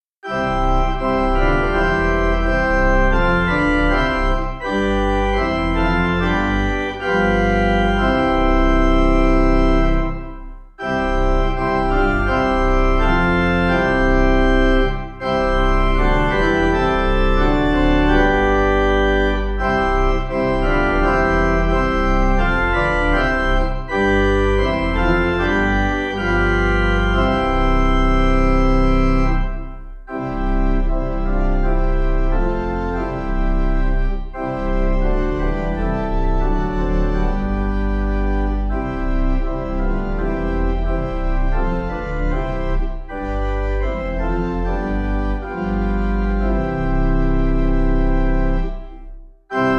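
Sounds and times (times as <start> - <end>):
pipe playing: 0.3 - 49.7.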